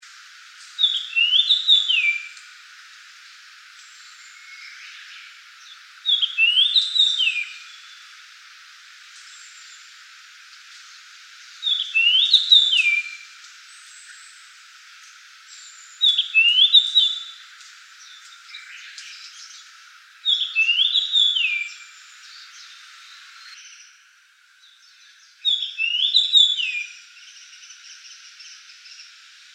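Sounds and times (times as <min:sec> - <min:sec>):
Japanese grosbeak calling: 0:00.6 - 0:02.4, 0:03.8 - 0:08.1, 0:10.9 - 0:24.0, 0:24.7 - 0:29.1.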